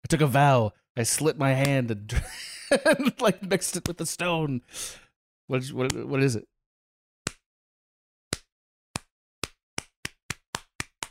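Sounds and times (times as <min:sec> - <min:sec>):
speech: 0:00.1 - 0:06.5
laughter: 0:02.1 - 0:03.7
slow clap of hand claps speeding up: 0:08.3 - 0:11.1.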